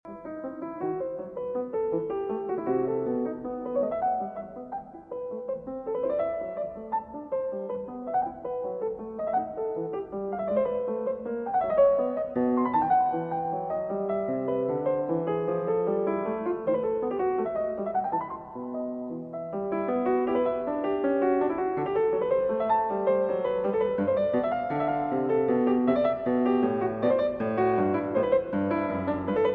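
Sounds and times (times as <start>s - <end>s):
baroque partita courante in E minor: 0.1s - 29.5s.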